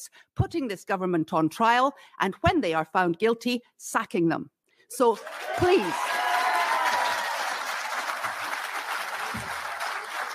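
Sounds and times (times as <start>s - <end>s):
speech: 0.0s - 6.2s
audience applause: 5.2s - 10.3s.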